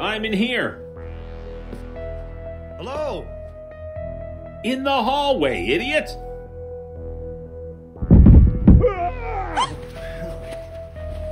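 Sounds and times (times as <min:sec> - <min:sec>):
speech: 0:00.2 - 0:00.8, 0:02.8 - 0:03.4, 0:04.6 - 0:06.2
person falling down a staircase: 0:08.0 - 0:08.9
low hum: 0:08.0 - 0:09.2
wailing cry: 0:08.8 - 0:10.4.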